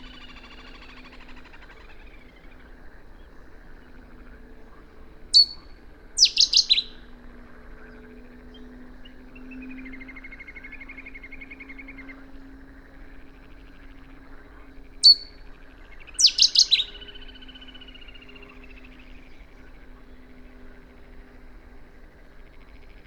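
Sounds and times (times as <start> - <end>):
Cetti's warbler song: 0.0 - 23.0.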